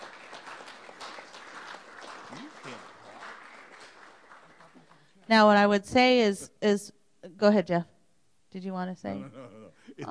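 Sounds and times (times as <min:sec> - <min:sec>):
crowd applauding: 0:00.0 - 0:05.2
speech: 0:05.3 - 0:07.9, 0:08.5 - 0:10.1.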